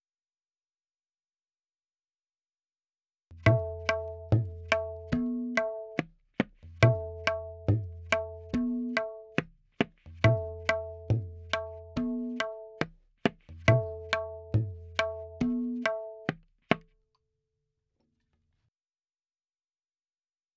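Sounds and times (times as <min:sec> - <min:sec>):
tabla in 4/4 at 70: 0:03.3 - 0:16.9.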